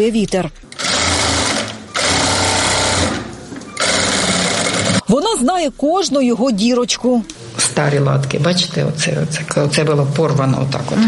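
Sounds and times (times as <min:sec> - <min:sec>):
speech: 0:00.0 - 0:00.6, 0:05.1 - 0:11.0
sewing machine stitching a flag: 0:00.7 - 0:05.0.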